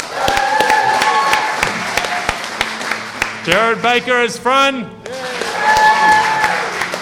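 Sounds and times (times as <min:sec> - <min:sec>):
audience applause: 0:00.0 - 0:04.1, 0:05.1 - 0:06.9
speech: 0:03.4 - 0:05.0.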